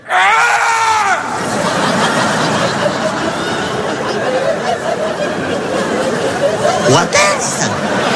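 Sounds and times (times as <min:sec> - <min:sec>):
person screaming loudly: 0:00.0 - 0:01.3
laughter: 0:00.6 - 0:08.1.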